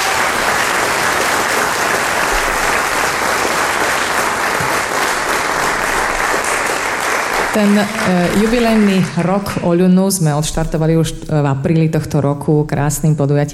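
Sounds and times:
audience applause: 0:00.0 - 0:09.7
speech: 0:07.6 - 0:13.5.

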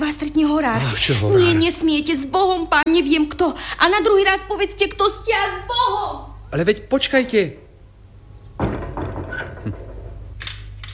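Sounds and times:
low hum: 0:00.0 - 0:10.9
speech: 0:00.4 - 0:07.6
door being shut: 0:08.6 - 0:10.2.

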